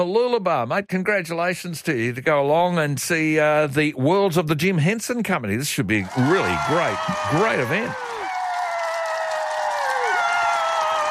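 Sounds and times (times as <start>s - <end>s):
speech: 0.0s - 8.2s
crowd cheering: 5.9s - 11.0s
applause: 6.0s - 11.0s.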